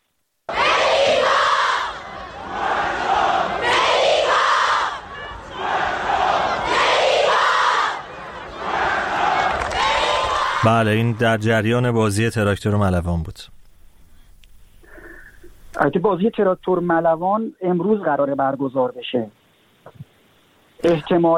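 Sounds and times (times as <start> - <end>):
football fans chanting in stadium stands: 0.5 - 11.7
speech: 10.6 - 13.6, 15.8 - 19.4, 20.8 - 21.3.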